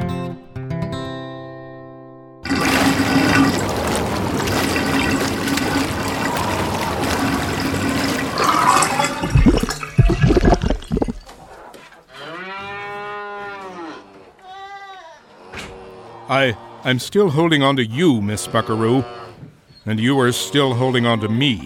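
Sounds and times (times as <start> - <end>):
toilet flush with swirling water: 2.5 - 11.3
speech: 16.4 - 21.6.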